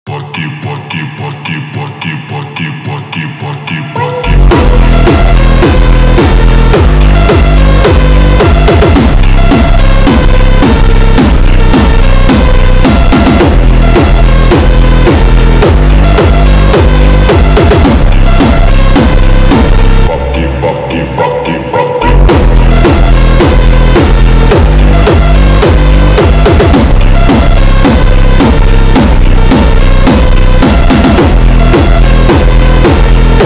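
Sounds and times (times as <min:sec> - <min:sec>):
hardstyle remix: 0:00.1 - 0:33.4.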